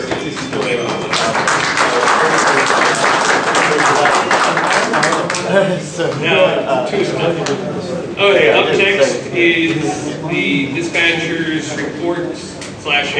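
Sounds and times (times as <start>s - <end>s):
audience applause: 0.2s - 5.6s
speech: 5.6s - 13.1s.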